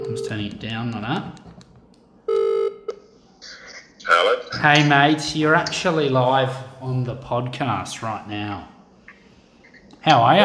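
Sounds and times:
speech: 0.2s - 1.4s, 4.6s - 8.7s, 10.0s - 10.4s
telephone dialing a call: 2.3s - 2.9s.

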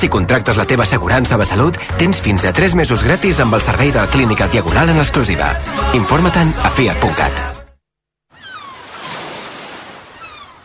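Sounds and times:
speech: 0.0s - 7.6s
sea waves washing onto a beach: 8.4s - 10.6s.

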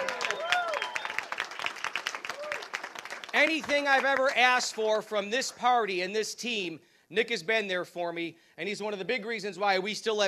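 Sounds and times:
audience applause: 0.0s - 4.8s
speech: 3.4s - 10.2s.

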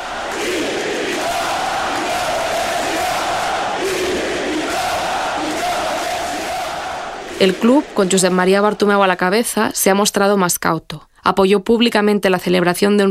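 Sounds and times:
Camp Nou stadium crowd standing and chanting: 0.0s - 9.5s
speech: 7.4s - 13.0s.

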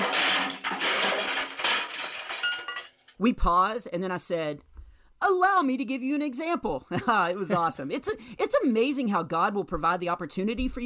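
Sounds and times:
stack of paint cans crashing to floor: 0.0s - 3.2s
speech: 3.2s - 4.7s, 5.3s - 10.8s.

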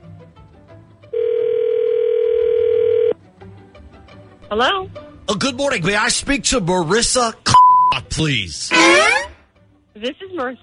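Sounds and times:
telephone line ringing tone: 1.2s - 3.2s
speech: 4.5s - 7.5s, 8.2s - 9.2s, 10.0s - 10.6s.

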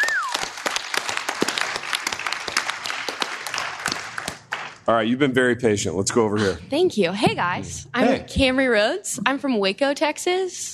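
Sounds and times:
high whistle: 0.0s - 0.5s
crowd applauding: 0.0s - 5.0s
speech: 4.9s - 10.7s.

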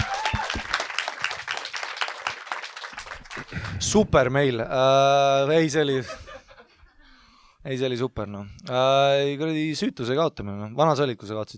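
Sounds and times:
audience applause: 0.0s - 4.1s
speech: 3.8s - 6.2s, 7.6s - 11.5s.

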